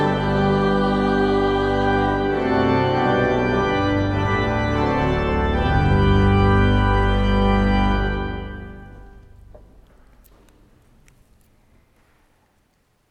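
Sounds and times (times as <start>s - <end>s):
hymn: 0.0s - 9.2s.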